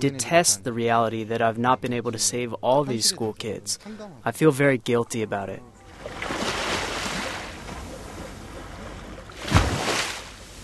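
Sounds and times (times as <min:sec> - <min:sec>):
speech: 0:00.0 - 0:05.8
waves lapping at the shore: 0:05.8 - 0:10.6.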